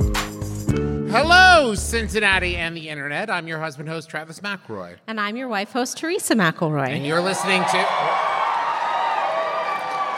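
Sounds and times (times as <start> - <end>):
speech: 1.1 - 8.4
live audience applause and cheering: 7.0 - 10.1.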